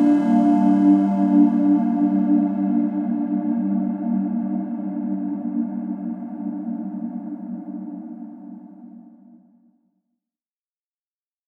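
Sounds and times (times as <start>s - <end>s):
synth: 0.0s - 8.3s.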